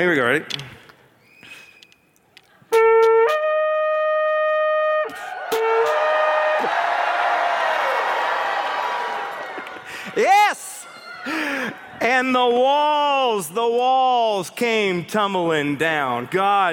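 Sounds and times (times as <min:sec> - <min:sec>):
speech: 0:00.0 - 0:00.8, 0:12.1 - 0:16.7
shofar blast: 0:02.7 - 0:07.2
crowd shouting and cheering: 0:04.5 - 0:13.4.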